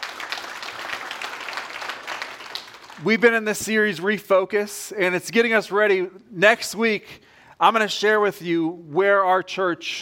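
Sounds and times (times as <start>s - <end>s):
church congregation applauding to welcome guests: 0.0s - 4.0s
speech: 3.0s - 9.9s.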